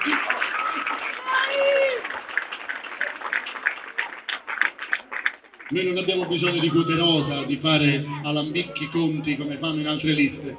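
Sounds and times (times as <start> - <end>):
crowd applauding in a town square: 0.0 - 8.2
speech: 5.7 - 10.5.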